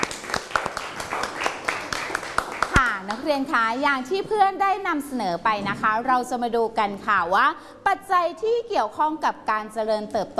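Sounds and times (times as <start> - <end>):
students applauding: 0.0 - 3.0
speech: 3.3 - 10.3.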